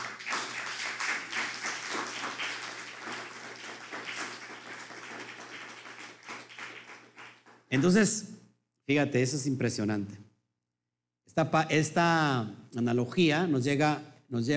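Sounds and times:
crowd applause: 0.0 - 7.6
speech: 7.7 - 8.3, 8.9 - 10.3, 11.4 - 14.5.

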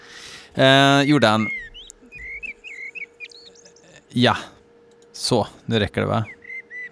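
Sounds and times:
low steady background hum: 0.0 - 6.9
speech: 0.6 - 1.7, 4.1 - 4.5, 5.2 - 6.9
small bird chirping: 0.7 - 4.2, 6.2 - 6.9.

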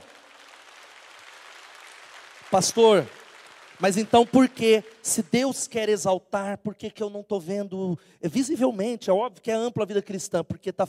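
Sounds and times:
audience applause: 0.0 - 4.8
speech: 2.5 - 3.2, 3.8 - 10.8.

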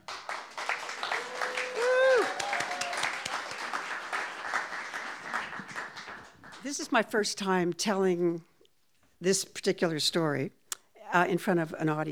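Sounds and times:
audience applause at a live storytelling event: 0.0 - 6.9
speech: 6.6 - 8.5, 9.2 - 12.1.

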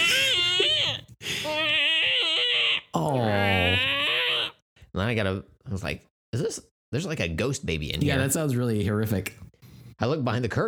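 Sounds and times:
voice imitating an office chair creaking when leaning: 0.0 - 4.5
speech: 5.1 - 10.6.

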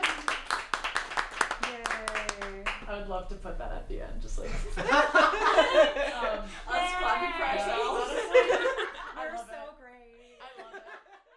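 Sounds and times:
small audience applauding: 0.0 - 2.9
speech: 3.1 - 9.7
laughter: 4.5 - 9.6, 10.3 - 11.3.

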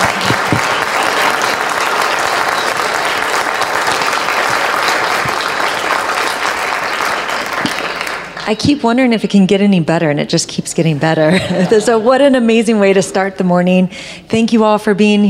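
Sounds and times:
audience applause: 0.0 - 8.4
speech: 8.5 - 15.2
laughter: 11.0 - 12.3.

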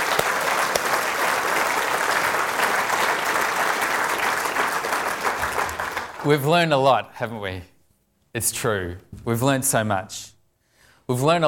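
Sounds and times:
audience applause: 0.0 - 6.5
speech: 6.2 - 7.7, 8.4 - 10.4, 11.1 - 11.4.

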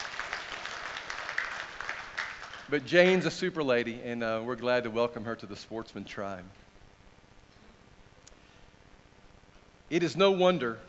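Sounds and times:
applause: 0.0 - 3.2
speech: 2.7 - 6.6, 9.9 - 10.8.

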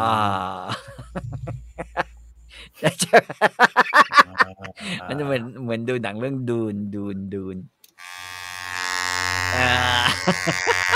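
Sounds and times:
speech: 0.0 - 0.8, 2.8 - 4.2, 4.8 - 7.8, 9.5 - 10.9
laughter: 0.0 - 5.3, 9.6 - 10.9
massage gun buzzing: 7.9 - 10.9.

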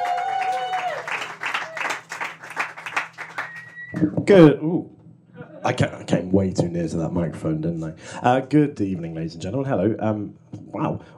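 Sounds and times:
audience clapping at a stand-up comedy show in Edinburgh: 0.0 - 4.0
speech: 4.0 - 5.0, 5.6 - 11.1.

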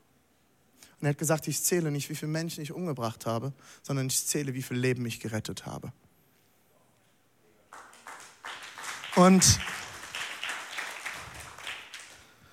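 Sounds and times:
speech: 1.0 - 6.0, 9.2 - 9.8
a few people clapping: 7.7 - 12.5.

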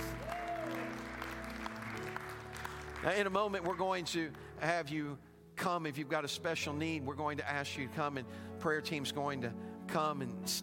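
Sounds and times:
audience clapping: 0.0 - 4.8
speech: 3.0 - 10.6.

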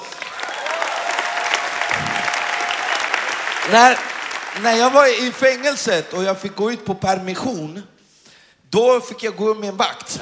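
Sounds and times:
audience applause: 0.0 - 6.6
speech: 3.7 - 7.9, 8.7 - 10.2.

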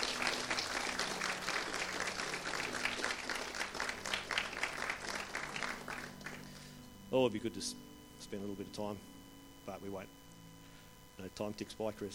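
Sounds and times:
audience applauding: 0.0 - 6.7
speech: 7.1 - 10.2, 11.2 - 12.1.

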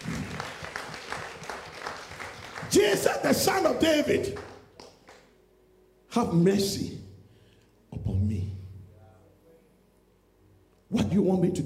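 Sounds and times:
audience clapping: 0.0 - 5.3
speech: 2.7 - 4.5, 6.2 - 7.0, 11.2 - 11.6.

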